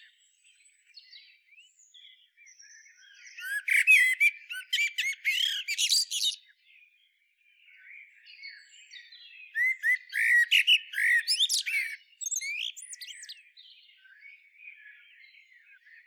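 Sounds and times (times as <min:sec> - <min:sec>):
Common blackbird calling: 0:03.4 - 0:06.4, 0:09.6 - 0:13.4.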